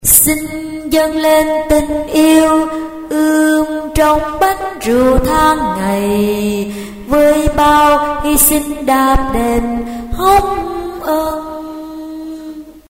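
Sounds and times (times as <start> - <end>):
tenor singing: 0.0 - 12.8.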